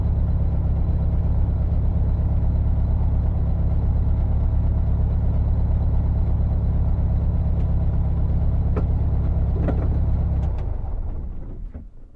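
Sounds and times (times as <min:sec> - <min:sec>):
VW Bug engine idling and switching off inside the car: 0:00.0 - 0:12.1.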